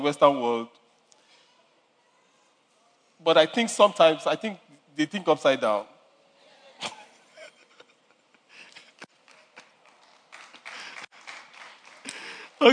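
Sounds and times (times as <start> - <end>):
speech: 0.0 - 0.8, 3.2 - 5.9, 12.6 - 12.7
audience clapping weakly: 9.0 - 12.7.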